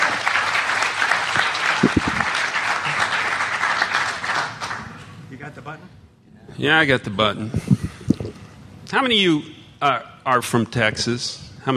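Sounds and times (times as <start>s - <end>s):
audience applause: 0.0s - 4.9s
speech: 6.6s - 7.7s, 8.9s - 11.7s.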